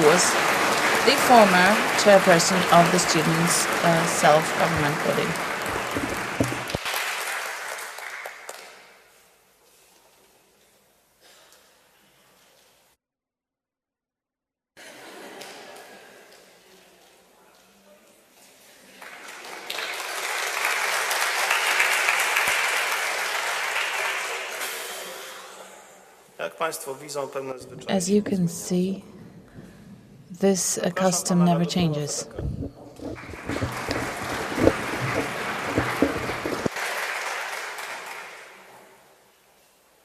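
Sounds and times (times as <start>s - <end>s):
audience applause: 0.0s - 8.8s, 18.8s - 25.1s, 32.2s - 38.9s
speech: 0.2s - 5.5s, 26.7s - 29.2s, 30.4s - 32.6s.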